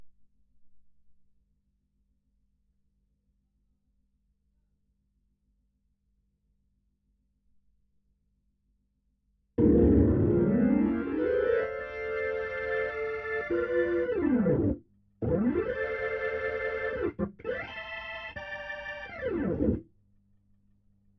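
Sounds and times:
Hammond organ: 9.6 - 19.8.

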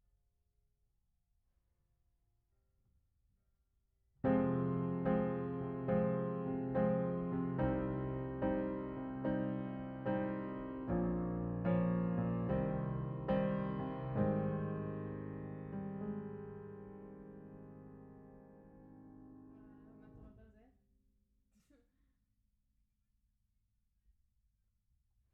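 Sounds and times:
piano: 4.2 - 20.4.

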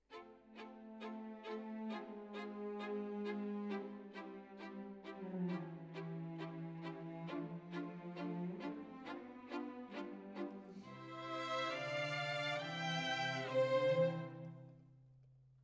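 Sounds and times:
violin solo: 0.1 - 14.7.

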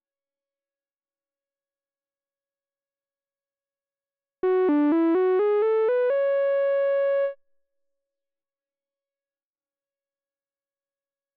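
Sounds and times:
Moog synthesizer: 4.4 - 7.4.

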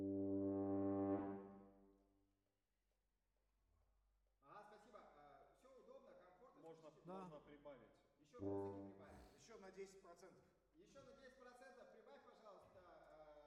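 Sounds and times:
saxophone: 0.0 - 1.6, 8.4 - 9.1.

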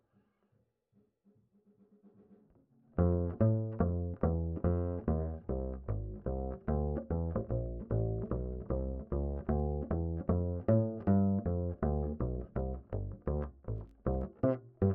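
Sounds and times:
bass line: 3.0 - 14.9.

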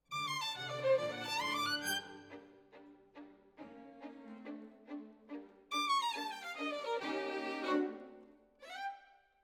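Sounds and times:
violin solo: 0.1 - 9.2.

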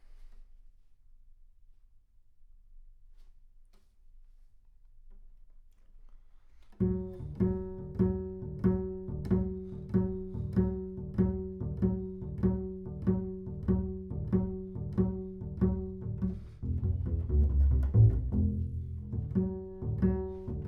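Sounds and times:
bass sound: 6.9 - 20.6.

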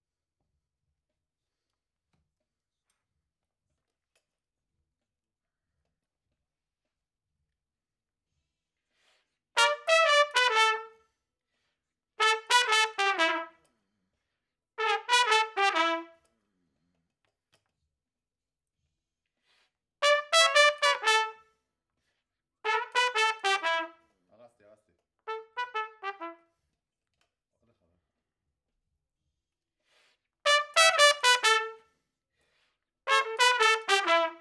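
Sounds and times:
trumpet: 9.6 - 11.1, 12.2 - 13.7, 14.8 - 16.3, 20.0 - 21.5, 22.7 - 24.1, 25.3 - 26.5, 30.4 - 32.0, 33.1 - 34.4.

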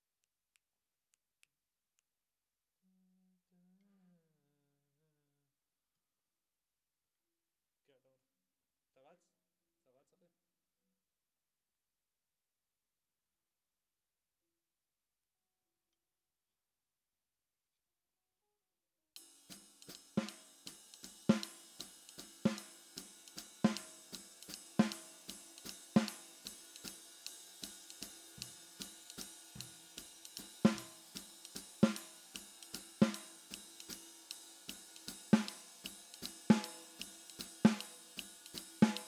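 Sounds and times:
snare drum: 19.2 - 39.0.

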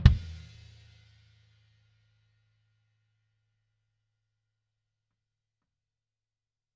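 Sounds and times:
bass drum hit: 0.1 - 0.6.

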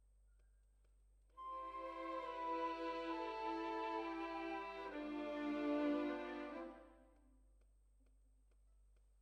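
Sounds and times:
violins: 1.4 - 7.0.

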